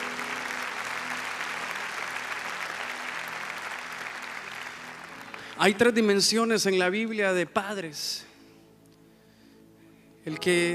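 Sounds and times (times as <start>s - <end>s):
audience applauding: 0.0s - 6.2s
speech: 5.6s - 8.3s, 10.3s - 10.7s.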